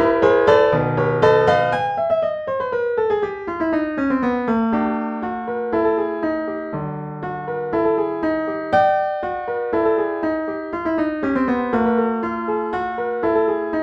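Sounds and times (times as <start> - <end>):
piano fantasy in 25 edo: 0.0 - 13.8.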